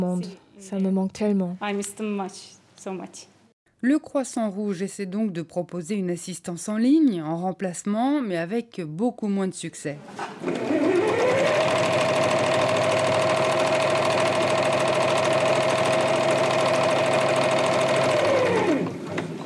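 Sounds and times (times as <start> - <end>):
speech: 0.1 - 10.8
sewing machines in a Red Cross centre's sewing room: 10.3 - 19.4.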